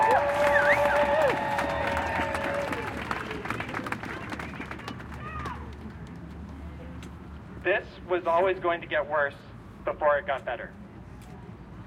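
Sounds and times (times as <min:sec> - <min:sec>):
crowd applauding and cheering: 0:00.0 - 0:06.2
speech: 0:08.1 - 0:10.8.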